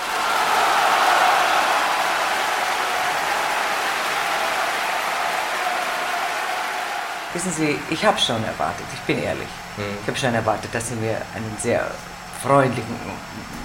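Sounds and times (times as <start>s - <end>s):
large opera audience applauding: 0.0s - 9.2s
speech: 7.4s - 13.6s.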